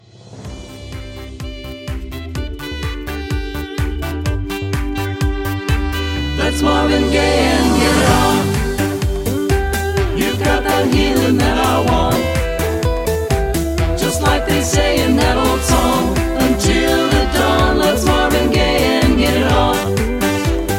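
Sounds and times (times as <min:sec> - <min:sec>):
instrumental music: 0:00.4 - 0:20.7
background vocals: 0:06.3 - 0:09.2, 0:10.0 - 0:20.6.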